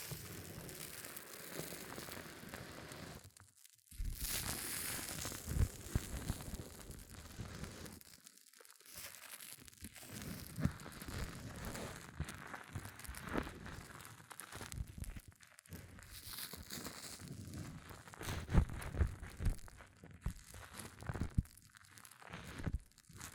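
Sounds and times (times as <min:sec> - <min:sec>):
hair mousse fizzing and crackling: 0:00.0 - 0:23.3.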